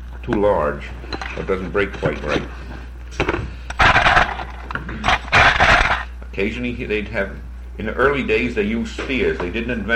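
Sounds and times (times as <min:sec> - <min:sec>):
speech: 0:00.2 - 0:03.3, 0:06.4 - 0:09.9
bone or antler flaking chips off stone: 0:03.8 - 0:06.1.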